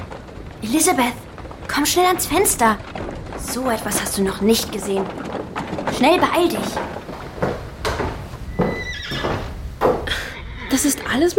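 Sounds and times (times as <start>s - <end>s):
loud thuds: 0.0s - 10.2s
horse-drawn carriage hooves clip-clopping: 0.0s - 11.3s
speech: 0.6s - 5.2s, 6.0s - 7.0s, 10.8s - 11.3s
horse whinnying: 8.5s - 9.6s.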